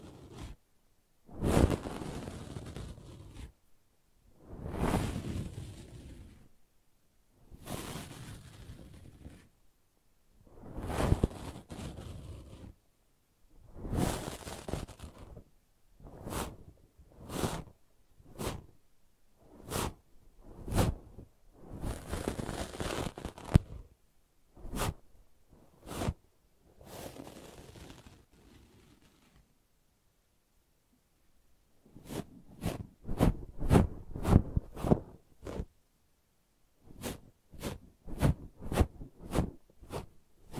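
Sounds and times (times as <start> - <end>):
brushing and scratching: 0.0 - 0.6, 1.3 - 3.5, 4.4 - 6.5, 7.5 - 9.5, 10.5 - 12.8, 13.7 - 15.4, 16.0 - 18.8, 19.4 - 23.9, 24.6 - 26.2, 26.8 - 29.5, 31.9 - 35.7, 36.9 - 40.5.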